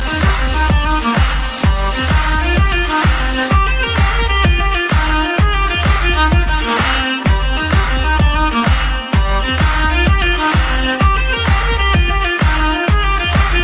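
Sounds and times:
Irish techno music: 0.0 - 13.6.

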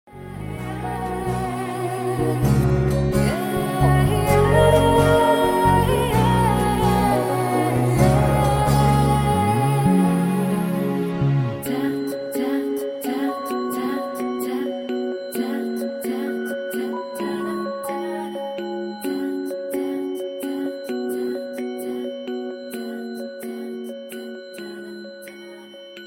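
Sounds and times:
pleasant music: 0.1 - 26.0.

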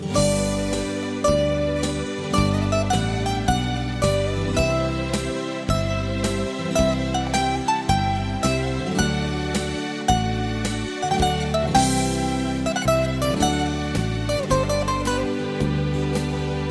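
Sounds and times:
Greek instrumental song: 0.0 - 16.7.

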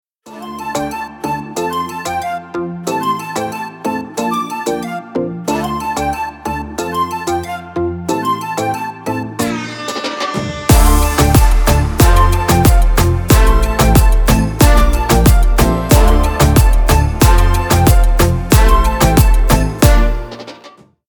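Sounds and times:
tropical house music: 0.3 - 20.8.

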